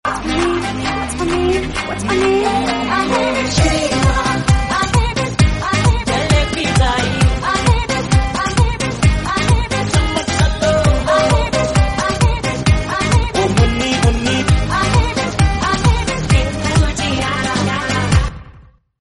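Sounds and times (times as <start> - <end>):
bollywood remix song ringtone: 0.1 - 18.2.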